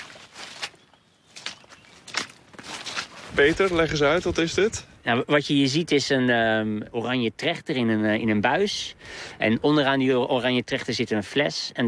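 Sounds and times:
footsteps crunching on dry forest ground: 0.0s - 4.9s
soft steady hiss: 3.0s - 11.6s
speech: 3.4s - 11.8s.

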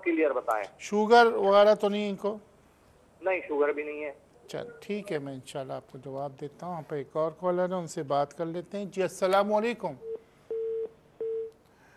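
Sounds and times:
speech: 0.2s - 2.5s, 3.2s - 10.1s
phone line beeps after a dropped call: 10.0s - 11.5s.

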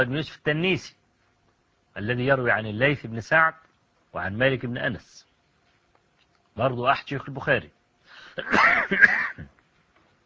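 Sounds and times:
speech: 0.0s - 1.0s, 2.0s - 5.3s, 6.6s - 7.8s, 8.4s - 9.5s
male lecturer coughing and clearing his throat: 8.2s - 9.6s.

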